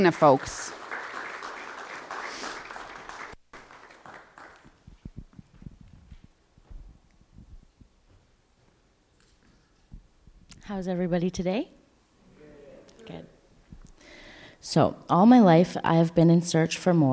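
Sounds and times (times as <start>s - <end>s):
speech: 0.0s - 0.8s, 10.8s - 11.8s, 13.1s - 13.3s, 14.6s - 17.1s
audience applause welcoming a woman at a church service: 0.0s - 5.0s
footstep-like thumps: 4.3s - 10.4s.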